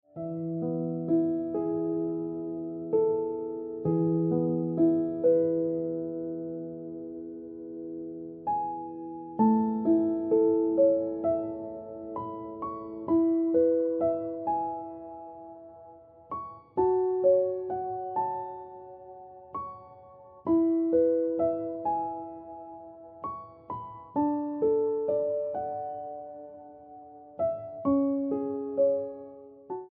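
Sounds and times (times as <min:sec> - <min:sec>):
piano ringtone music: 0:00.1 - 0:29.9.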